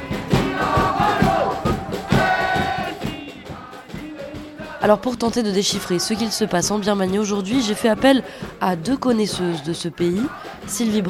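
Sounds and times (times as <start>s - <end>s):
protest march crowd chanting: 0.0s - 11.0s
speech: 4.8s - 11.0s.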